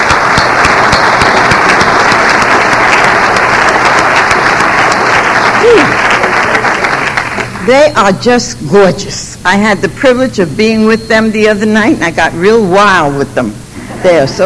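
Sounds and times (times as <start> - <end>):
audience applause: 0.0 - 7.6
speech: 7.7 - 14.4.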